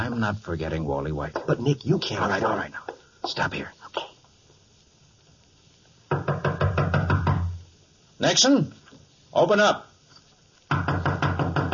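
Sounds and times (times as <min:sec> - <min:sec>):
speech: 0:00.0 - 0:04.1, 0:08.2 - 0:09.9, 0:10.7 - 0:11.2
knuckles knocking on a door: 0:06.1 - 0:07.6, 0:10.7 - 0:11.7.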